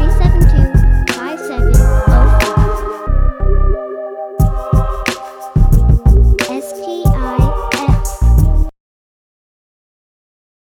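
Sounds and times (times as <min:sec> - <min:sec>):
sad Roland synthesizer: 0:00.5 - 0:08.2.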